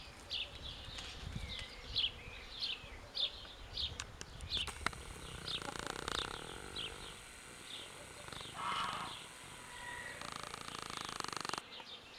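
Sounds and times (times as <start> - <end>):
house sparrow Passer domesticus chirping: 0.4 - 12.0.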